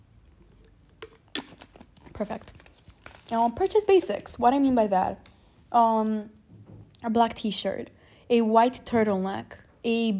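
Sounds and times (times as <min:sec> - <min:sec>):
person sipping a high protein shake: 0:00.2 - 0:02.2
speech: 0:02.2 - 0:02.6, 0:03.3 - 0:06.4, 0:07.0 - 0:10.1.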